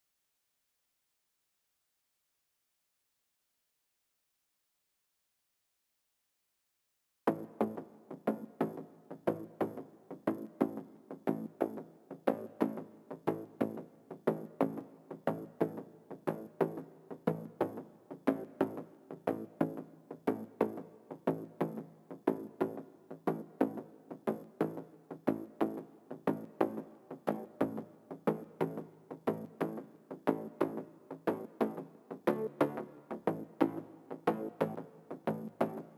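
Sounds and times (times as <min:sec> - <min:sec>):
bass: 0:07.3 - 0:35.9.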